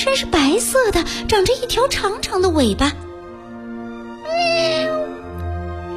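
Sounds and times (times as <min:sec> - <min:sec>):
speech: 0:00.0 - 0:03.1
kitten meowing: 0:04.2 - 0:05.2.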